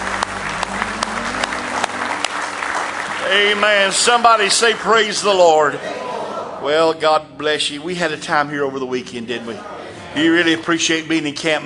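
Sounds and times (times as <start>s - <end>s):
audience clapping: 0.0s - 5.8s
speech: 3.3s - 11.6s.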